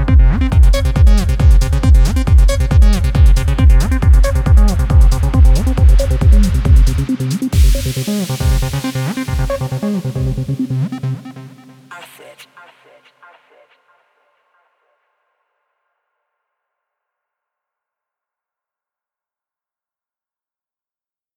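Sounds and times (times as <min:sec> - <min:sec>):
acid bass synth: 0:00.0 - 0:11.9.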